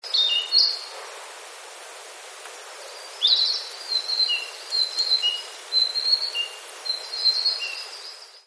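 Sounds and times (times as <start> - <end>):
Narcissus flycatcher song: 3.3 - 8.2.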